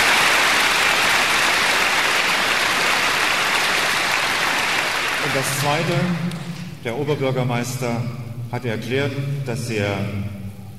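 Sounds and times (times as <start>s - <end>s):
dense clapping from a crowd: 0.0s - 6.6s
speech: 5.4s - 10.4s.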